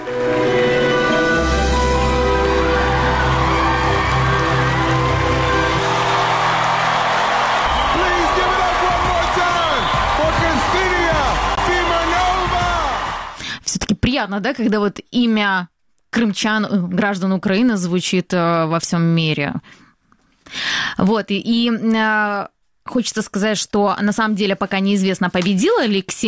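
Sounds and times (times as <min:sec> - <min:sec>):
sustained low music: 0:00.0 - 0:13.4
large audience standing ovation applause: 0:01.7 - 0:13.4
excited cheers and whoops: 0:02.2 - 0:13.4
speech: 0:14.2 - 0:19.8, 0:20.5 - 0:26.2.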